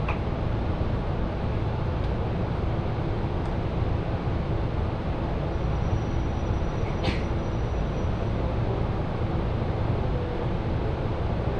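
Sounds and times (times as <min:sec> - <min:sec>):
Joban Line local train rumbling: 0:00.0 - 0:11.5.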